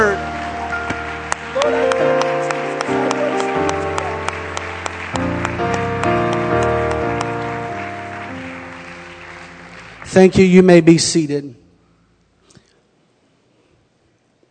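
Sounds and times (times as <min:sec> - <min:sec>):
audience clapping: 0:00.0 - 0:11.3
keyboard or organ music: 0:00.0 - 0:11.4
speech: 0:10.2 - 0:11.6.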